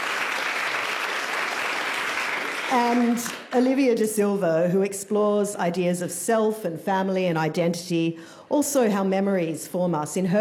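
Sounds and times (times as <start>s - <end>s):
audience applause for a poet at a reading: 0.0s - 3.5s
speech: 2.7s - 10.3s.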